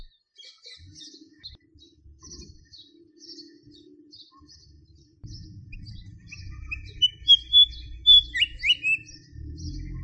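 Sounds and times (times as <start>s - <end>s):
white spotted fantail: 5.3s - 9.3s.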